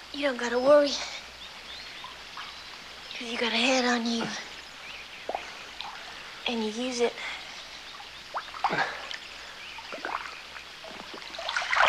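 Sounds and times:
speech: 0.2s - 1.2s, 3.2s - 4.5s, 6.5s - 7.4s, 8.7s - 9.0s
person swimming through water: 8.4s - 11.8s.

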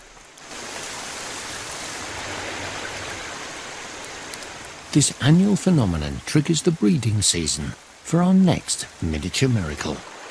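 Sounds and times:
monsoon rainwater dripping off hanging vegetation in a forest in southern India: 0.0s - 10.2s
speech: 4.9s - 10.1s.

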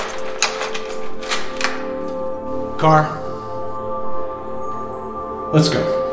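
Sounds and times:
prison cell door being locked: 0.0s - 2.1s
speech: 2.8s - 3.2s, 5.5s - 6.0s.

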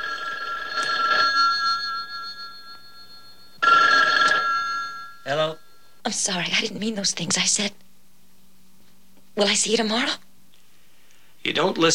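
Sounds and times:
telephone ringing in a bedroom: 0.0s - 6.2s
speech: 6.1s - 7.8s, 9.4s - 10.2s, 11.4s - 11.9s.

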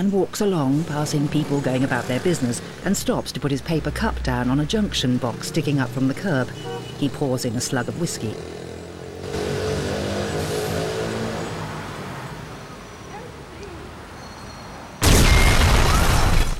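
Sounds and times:
speech: 0.0s - 8.6s
street rumble: 0.0s - 16.5s
explosion blast at a coffee bar: 15.0s - 16.5s.

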